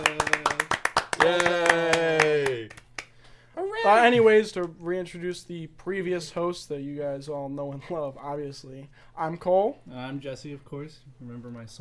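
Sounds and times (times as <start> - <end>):
small group clapping for a guest: 0.0 - 3.4
speech: 1.2 - 1.6, 3.8 - 11.8.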